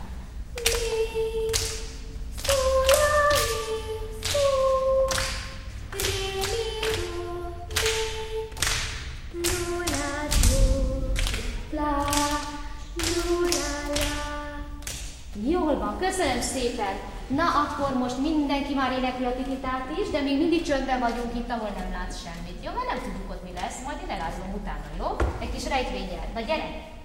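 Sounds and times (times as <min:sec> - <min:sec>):
group clapping along to a rhythm: 0:00.5 - 0:15.4
speech: 0:16.6 - 0:26.9.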